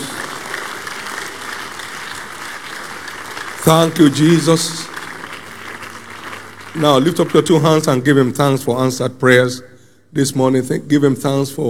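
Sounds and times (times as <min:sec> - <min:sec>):
audience applause: 0:00.0 - 0:08.0
speech: 0:03.6 - 0:04.9, 0:06.8 - 0:11.6.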